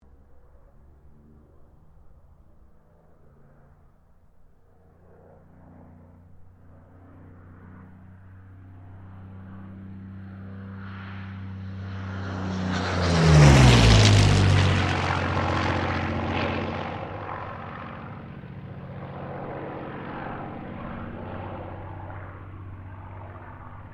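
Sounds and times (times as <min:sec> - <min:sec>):
P-40 Kittyhawk aircraft passing: 0:00.0 - 0:23.9.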